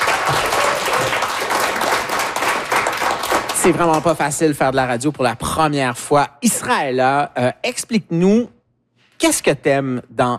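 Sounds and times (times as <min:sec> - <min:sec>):
crowd applauding: 0:00.0 - 0:04.3
speech: 0:03.6 - 0:08.6, 0:09.2 - 0:10.3.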